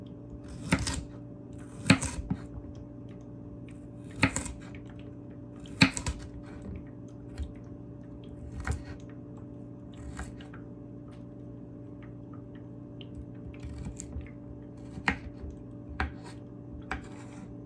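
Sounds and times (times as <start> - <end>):
steady low hum: 0.0 - 17.6
knife chopping carrot: 0.4 - 2.6, 4.0 - 4.8, 5.6 - 6.7, 8.4 - 9.0, 10.0 - 10.5, 13.5 - 17.6.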